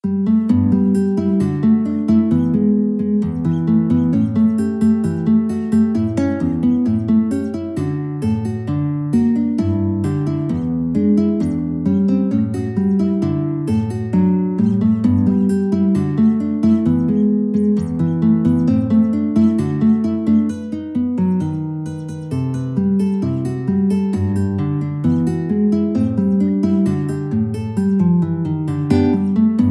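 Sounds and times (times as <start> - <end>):
guitar: 0.0 - 29.7.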